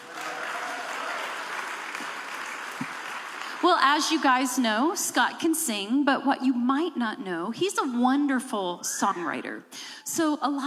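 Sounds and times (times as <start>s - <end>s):
audience applause welcoming a Christian singer and songwriter at a ministry event: 0.0s - 3.8s
speech: 3.6s - 10.6s.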